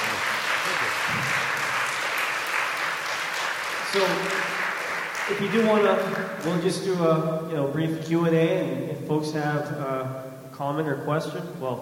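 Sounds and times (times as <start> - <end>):
round of applause: 0.0 - 6.7
speech: 3.9 - 4.5, 5.3 - 11.8.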